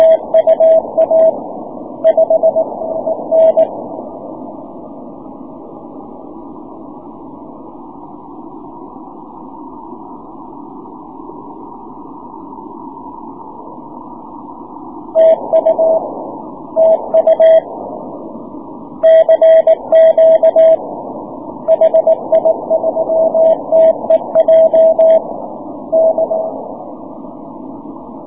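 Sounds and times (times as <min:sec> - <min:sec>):
6m CW morse code signal: 0:00.0 - 0:01.4, 0:02.0 - 0:03.8, 0:15.2 - 0:17.7, 0:19.0 - 0:20.9, 0:21.6 - 0:26.7.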